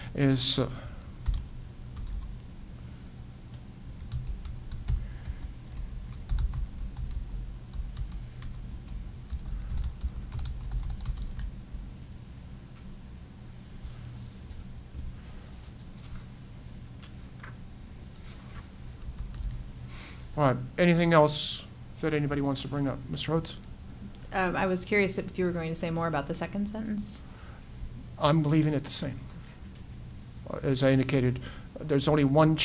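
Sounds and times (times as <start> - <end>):
steady low hum: 0.0 - 31.6
speech: 0.1 - 0.9, 20.4 - 23.7, 24.3 - 27.3, 28.2 - 29.3, 30.5 - 32.6
typing on a computer keyboard in a meeting: 1.2 - 2.3, 4.0 - 11.5, 19.1 - 19.6.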